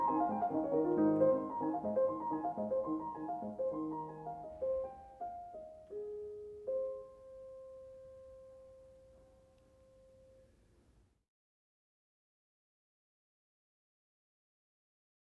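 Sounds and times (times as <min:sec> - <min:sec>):
piano mazurka in A major: 0:00.0 - 0:10.4.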